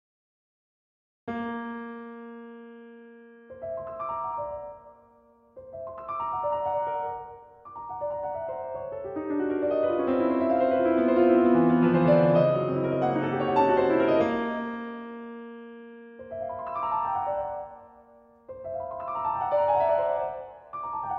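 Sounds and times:
piano piece: 1.3s - 21.1s.

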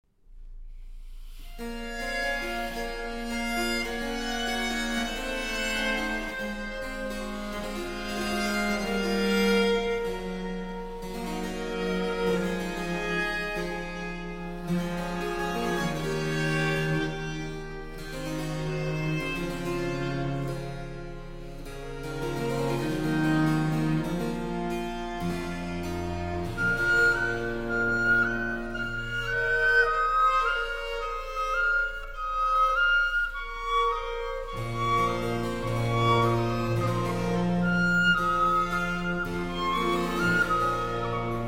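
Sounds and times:
basso continuo: 0.5s - 41.4s
two violins: 1.0s - 41.4s
piccolo in a baroque concerto adagio: 26.6s - 37.1s.

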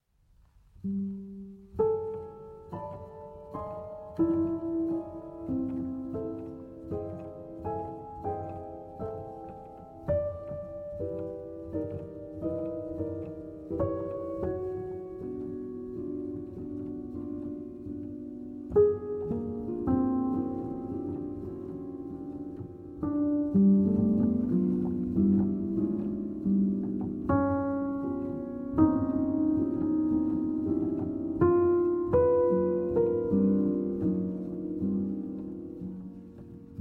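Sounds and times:
upright piano: 0.1s - 36.7s.

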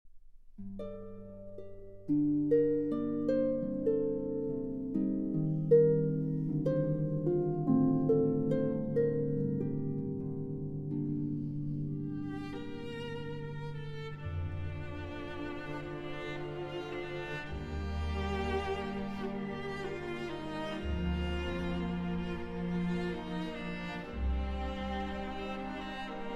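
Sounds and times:
harp: 0.5s - 26.3s
orchestra playing: 12.2s - 26.3s.

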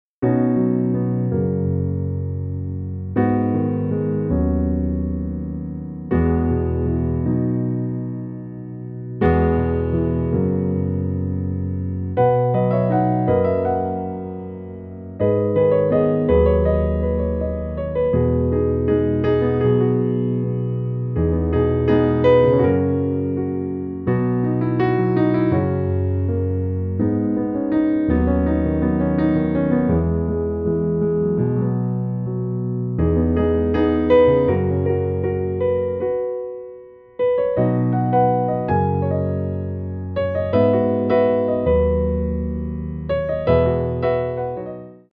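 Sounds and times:
piano music: 0.2s - 45.1s.

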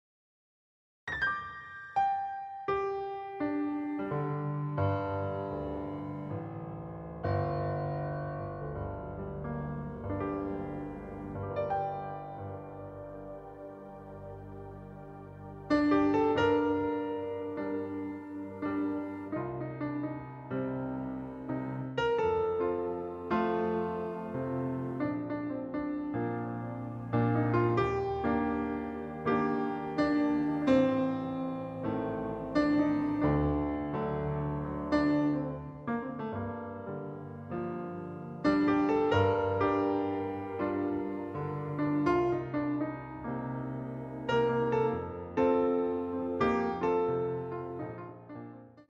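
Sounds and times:
piano bar music: 1.1s - 48.9s.

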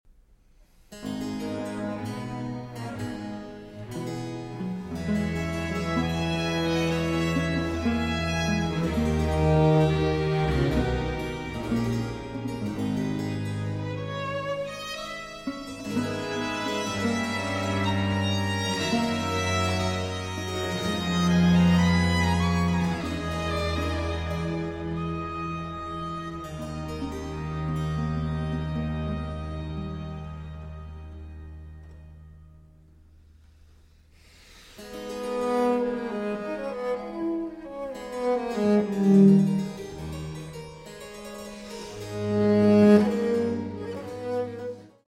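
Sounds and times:
cello concerto adagio in D minor: 0.9s - 32.7s, 33.6s - 40.6s, 41.7s - 45.0s.

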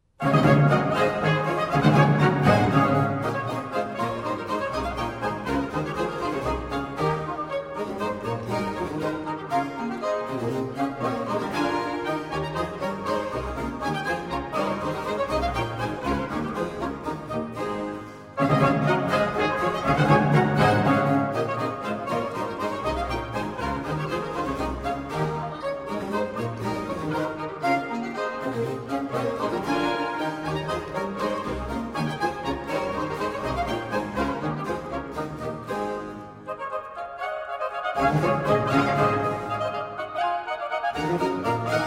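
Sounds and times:
orchestral suite in D: 0.0s - 41.8s.

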